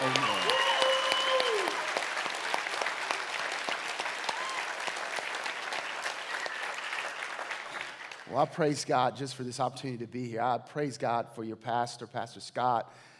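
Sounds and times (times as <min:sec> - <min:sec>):
audience clapping hands: 0:00.0 - 0:08.6
speech: 0:08.3 - 0:13.1.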